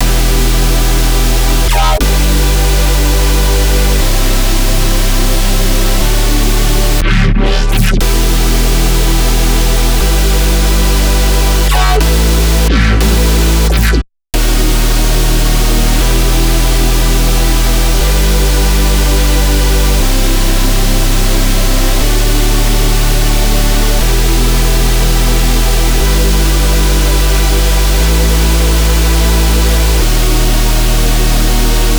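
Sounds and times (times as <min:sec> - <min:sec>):
melodic dubstep loop: 0:00.0 - 0:31.9.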